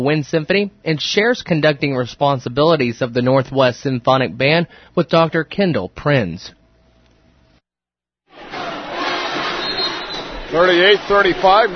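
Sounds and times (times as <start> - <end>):
speech: 0.0 - 6.6, 10.5 - 11.7
Bearcat fans making noise at Bearcat Arena: 8.3 - 11.7.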